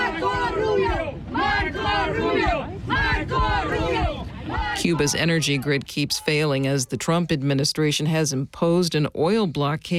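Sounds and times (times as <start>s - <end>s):
Cuban Americans in Miami cheering and shouting: 0.0s - 6.7s
speech: 4.8s - 9.9s.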